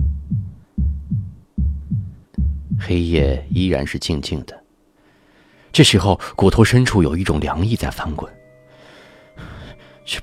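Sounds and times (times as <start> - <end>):
heartbeat: 0.0 - 3.6
speech: 2.9 - 4.6, 5.8 - 8.4.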